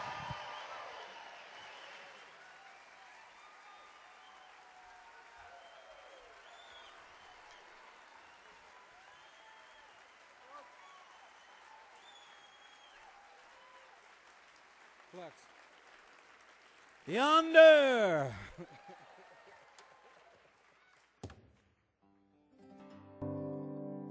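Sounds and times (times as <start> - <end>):
concert audience applause welcoming performers to the stage: 0.0 - 21.2
speech: 15.2 - 15.6, 17.1 - 18.5
concert crowd noise: 17.1 - 18.6.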